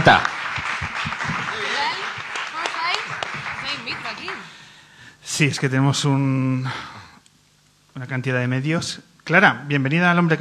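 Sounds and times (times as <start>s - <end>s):
speech: 0.0s - 0.3s, 5.4s - 6.9s, 8.0s - 10.3s
audience applause: 0.0s - 4.8s.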